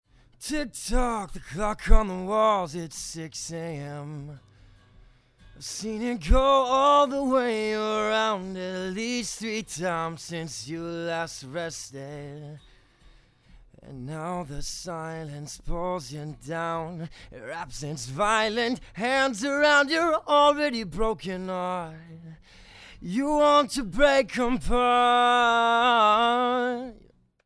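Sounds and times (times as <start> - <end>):
vocals: 0.0 - 27.2.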